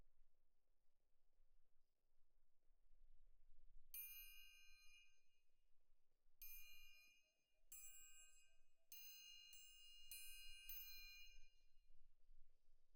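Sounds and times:
main percussion: 0:04.0 - 0:05.2, 0:06.4 - 0:11.6.

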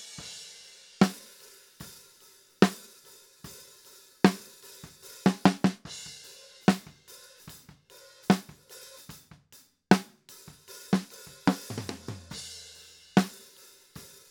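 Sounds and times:
snare drum top: 0:05.2 - 0:05.9, 0:08.3 - 0:09.2, 0:09.9 - 0:12.5.

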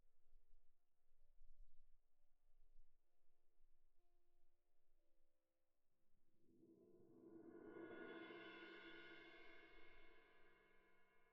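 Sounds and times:
cymbal: 0:07.2 - 0:11.2.

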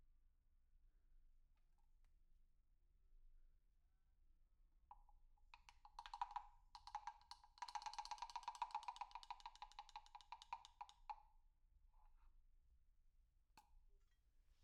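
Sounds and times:
percussion recorded with overhead microphones: 0:05.5 - 0:11.2.

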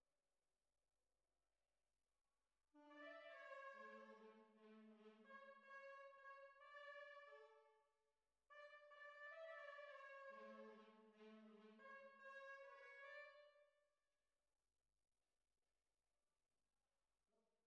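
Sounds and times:
tuba: 0:02.8 - 0:07.7, 0:08.5 - 0:13.6.

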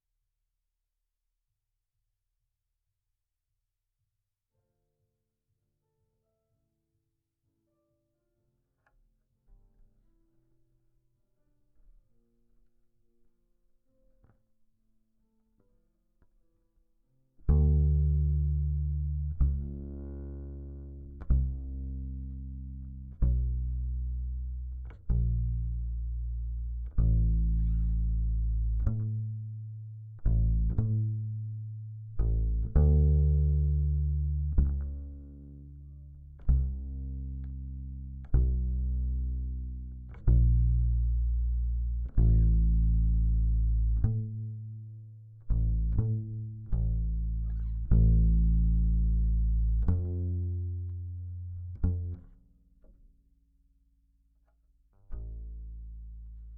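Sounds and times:
bass guitar recorded by direct input: 0:17.4 - 0:53.2, 0:54.9 - 0:56.5.

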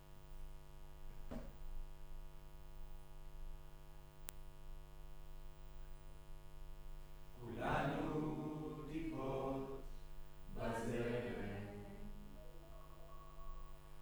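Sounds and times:
choir singing in room: 0:07.4 - 0:13.8.

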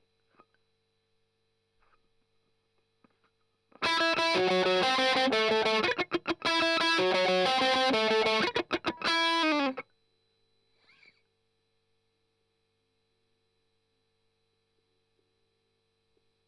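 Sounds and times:
strummed octaves: 0:03.8 - 0:09.8.

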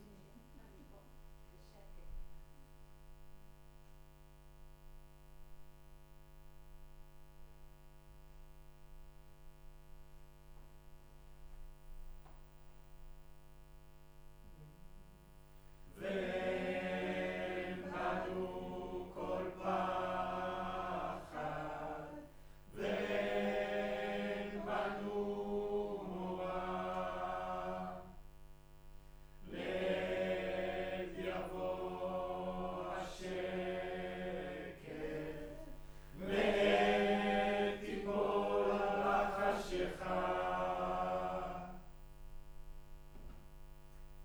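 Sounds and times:
choir singing in room: 0:15.9 - 0:28.2, 0:29.4 - 0:41.9.

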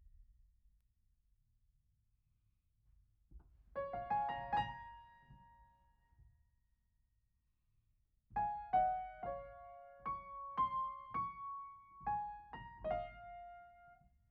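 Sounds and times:
piano: 0:03.7 - 0:06.4, 0:08.3 - 0:14.3.

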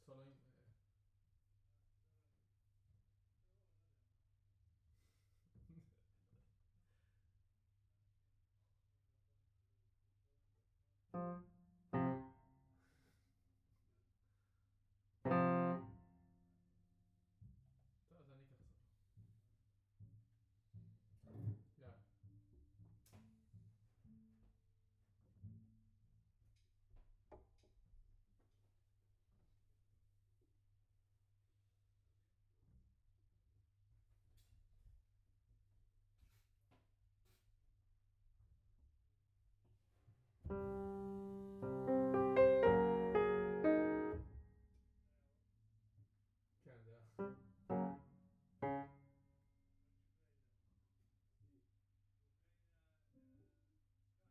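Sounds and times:
piano note B: 0:15.3 - 0:16.0, 0:40.5 - 0:44.4, 0:47.2 - 0:49.0.

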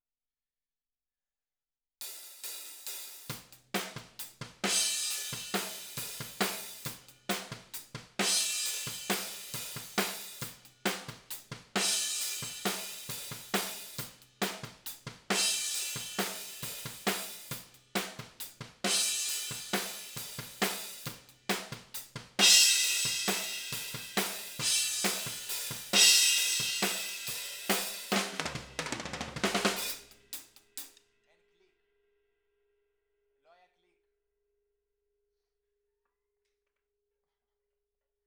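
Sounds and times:
ride cymbal: 0:02.1 - 0:31.0.

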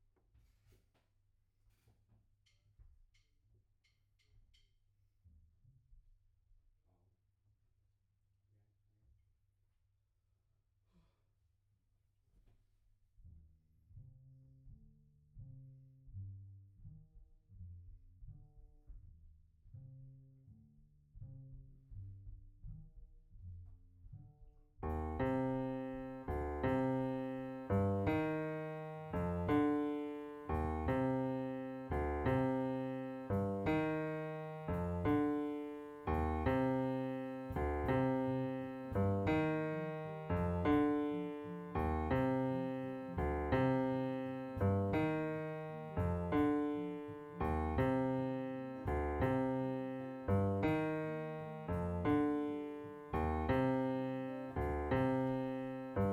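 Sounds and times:
piano note B: 0:24.8 - 0:56.1.

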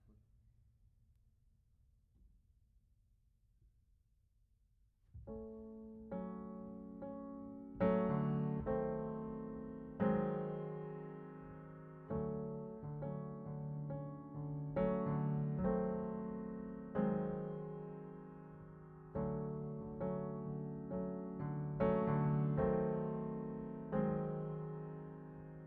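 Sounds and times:
piano: 0:05.1 - 0:25.6.

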